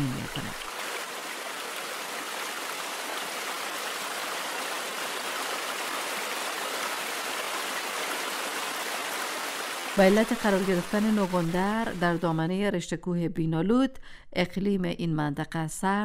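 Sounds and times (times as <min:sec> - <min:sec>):
flowing river water: 0:00.0 - 0:12.3
speech: 0:10.0 - 0:16.0.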